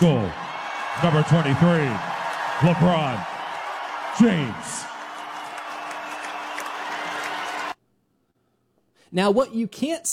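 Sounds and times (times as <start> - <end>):
speech: 0.0 - 0.4, 1.0 - 3.3, 4.2 - 4.9, 9.1 - 10.1
arena crowd ovation and applause: 0.0 - 7.8.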